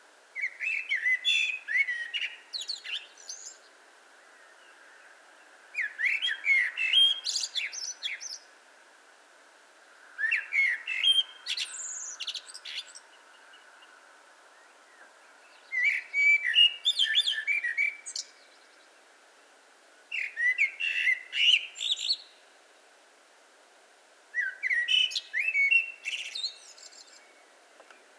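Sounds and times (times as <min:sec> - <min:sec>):
Eurasian blackbird song: 0:00.4 - 0:08.6, 0:10.2 - 0:19.1, 0:20.1 - 0:22.4, 0:24.3 - 0:28.1.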